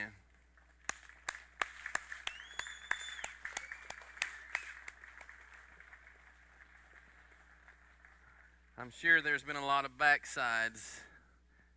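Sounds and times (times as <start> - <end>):
audience applause: 0.9 - 8.7
speech: 8.8 - 11.1.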